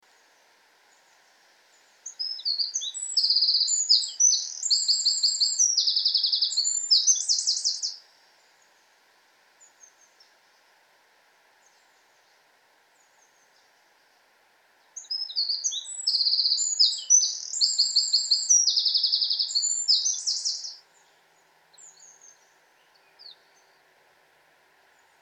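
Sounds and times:
faint scattered bird chirps: 0.2s - 8.9s, 9.6s - 10.4s, 11.6s - 14.0s, 14.8s - 24.0s
Eurasian wren song: 0.9s - 8.0s, 14.9s - 23.9s.

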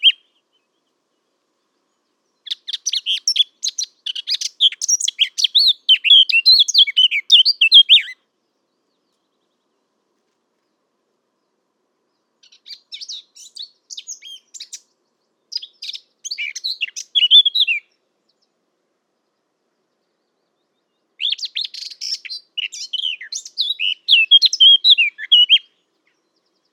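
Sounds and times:
Eurasian blackcap singing: 0.0s - 0.6s, 2.4s - 8.2s, 12.4s - 14.9s, 15.5s - 18.4s, 21.2s - 26.7s.

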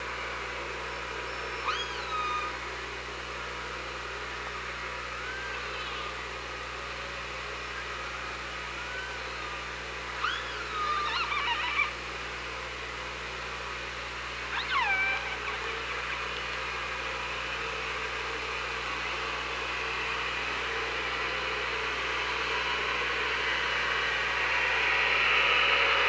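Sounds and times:
low hum: 0.0s - 26.0s
killer whale calls: 1.5s - 2.6s, 10.2s - 11.9s, 14.5s - 16.4s.

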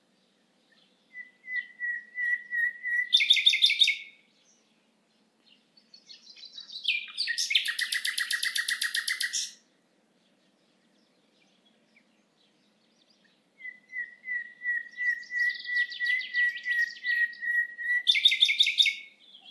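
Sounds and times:
Common nightingale song: 0.0s - 19.4s.

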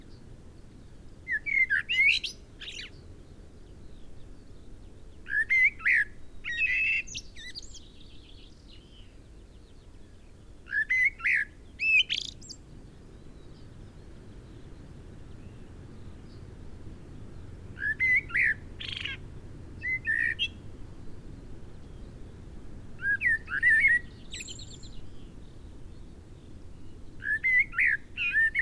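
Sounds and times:
common blackbird singing: 1.3s - 3.0s, 5.3s - 9.1s, 10.7s - 12.6s, 17.8s - 19.2s, 19.8s - 20.6s, 23.0s - 25.3s, 26.8s - 28.5s.

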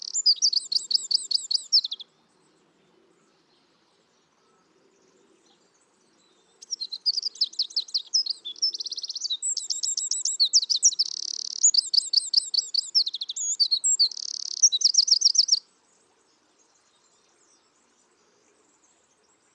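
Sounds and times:
Eurasian wren singing: 0.0s - 2.0s, 6.6s - 15.6s.

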